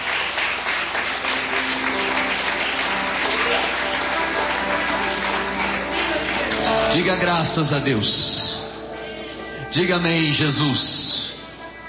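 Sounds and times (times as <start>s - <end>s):
audience clapping hands: 0.0s - 7.7s
speech: 7.0s - 8.6s, 9.8s - 11.1s.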